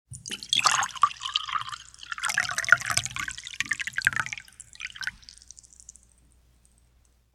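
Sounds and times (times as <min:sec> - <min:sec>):
tea pouring into a full cup: 0:00.2 - 0:05.9.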